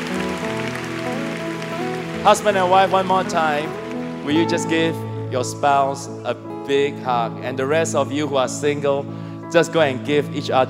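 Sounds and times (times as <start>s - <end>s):
large crowd clapping: 0.0s - 5.1s
speech: 2.2s - 10.6s.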